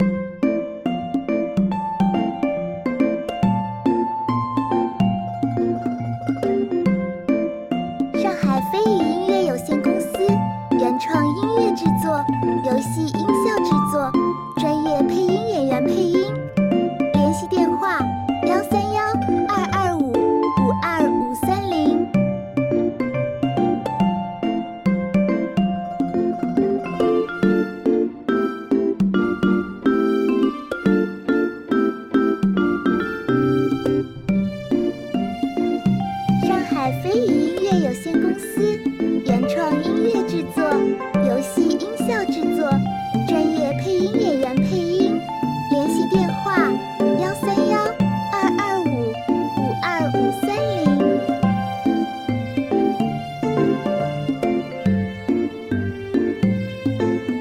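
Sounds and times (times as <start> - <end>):
lively relaxed cheerful Chinese-style music: 0.0 - 57.3.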